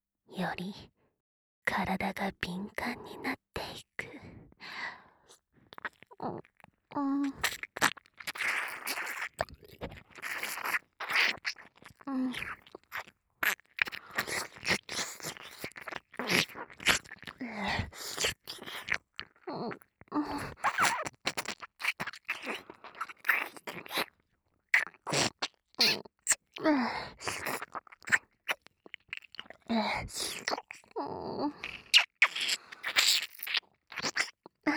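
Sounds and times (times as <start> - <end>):
speech: 0.4 - 1.0, 1.6 - 3.9, 6.2 - 7.5, 12.1 - 12.6
wet ear-licking mouth sounds: 5.7 - 24.2, 24.8 - 26.6, 27.2 - 34.6.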